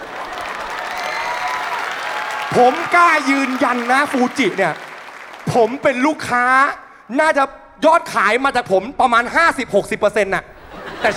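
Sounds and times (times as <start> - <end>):
audience applause: 0.0 - 6.0
speech: 2.5 - 4.8, 5.4 - 11.1
laughter: 10.5 - 11.1.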